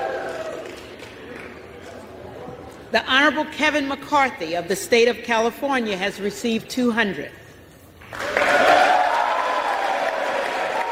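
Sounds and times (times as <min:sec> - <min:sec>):
crowd of legislators cheering: 0:00.0 - 0:01.1, 0:08.1 - 0:10.9
speech: 0:02.9 - 0:07.4.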